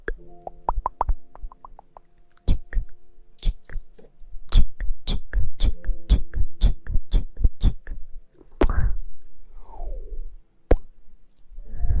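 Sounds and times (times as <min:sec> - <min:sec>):
kissing sounds in the ear: 0:00.0 - 0:08.0
faint low hum: 0:00.0 - 0:11.9.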